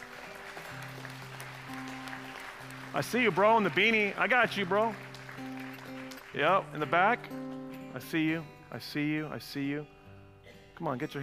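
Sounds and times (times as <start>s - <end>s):
audience cheering and applauding: 0.0s - 6.6s
speech: 2.9s - 5.0s, 6.3s - 10.0s, 10.8s - 11.2s.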